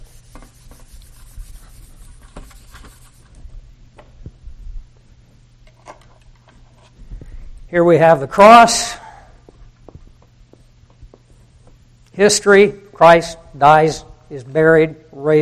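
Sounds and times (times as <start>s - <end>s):
writing on a board while drawing a timeline: 0.0s - 3.3s
speech: 7.7s - 9.0s, 12.2s - 15.4s.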